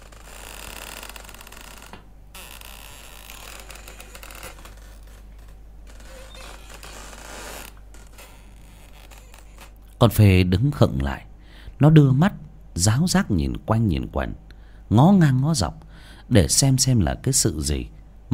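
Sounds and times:
hammock creaking back and forth in a bedroom: 0.0s - 10.0s
speech: 10.0s - 18.0s.

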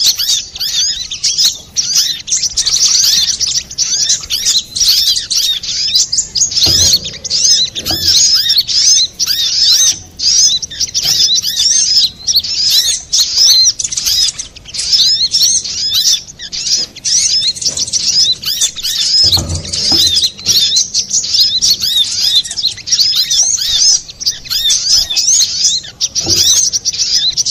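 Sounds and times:
little spiderhunter song: 0.0s - 27.4s
low thumps: 4.2s - 9.4s, 17.5s - 22.0s, 26.1s - 27.1s.

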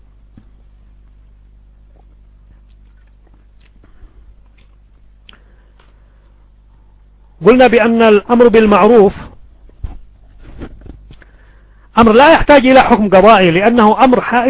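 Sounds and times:
low hum: 0.0s - 12.1s
person sipping and swallowing water: 1.8s - 6.0s
speech: 7.4s - 9.2s, 12.0s - 14.4s.

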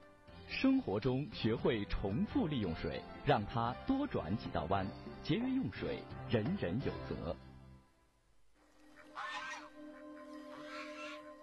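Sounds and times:
speech: 0.6s - 7.5s
goose honking: 8.9s - 11.4s.

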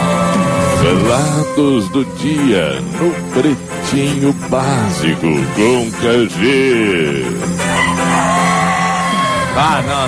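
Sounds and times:
rooster crowing: 0.0s - 1.3s, 7.6s - 9.5s
speech: 0.9s - 7.5s, 9.6s - 10.0s.

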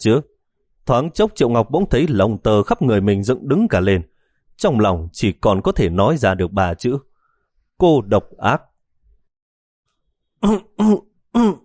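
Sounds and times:
speech: 0.0s - 7.1s, 7.8s - 8.7s, 10.4s - 11.6s
man coughing on cigarette smoke while driving a car on a highway: 10.4s - 11.6s.

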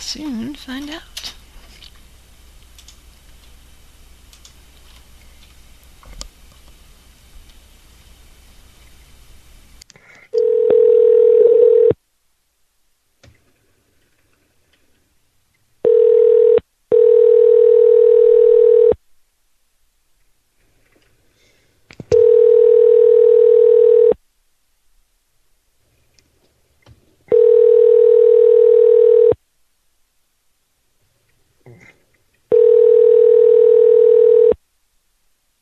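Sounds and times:
faint noise: 0.0s - 35.6s
speech: 0.1s - 1.2s
telephone tones while calling an unknown number: 10.4s - 12.0s, 15.8s - 19.0s, 22.1s - 24.2s, 27.3s - 29.4s, 32.5s - 34.6s.

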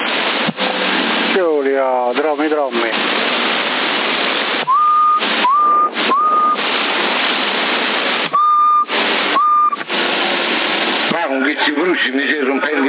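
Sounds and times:
hissing CB radio static in Sassari: 0.0s - 12.8s
speech: 1.4s - 3.1s, 11.9s - 12.8s
whistle tones over CB radio in Sassari: 4.6s - 6.6s, 8.3s - 9.8s.

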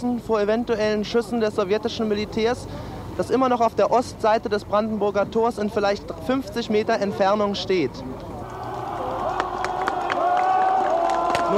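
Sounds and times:
speech: 0.0s - 8.3s
crowd of demonstrators at the Brandenburg Gate in Berlin cheering and calling out: 8.4s - 11.5s
demonstrators' hand claps: 9.2s - 11.5s.

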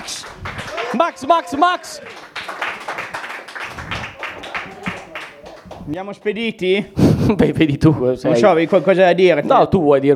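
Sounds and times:
audience applause: 0.0s - 6.0s
speech: 0.9s - 2.2s, 5.9s - 10.1s.

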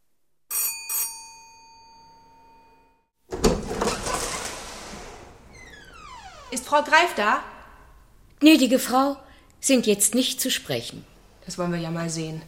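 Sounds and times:
doorbell ringing: 0.5s - 3.0s
speech: 6.5s - 7.5s, 8.4s - 12.4s.

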